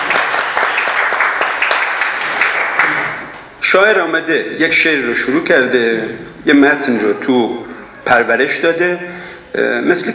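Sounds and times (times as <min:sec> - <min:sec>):
audience applause: 0:00.0 - 0:03.4
speech: 0:03.7 - 0:10.1.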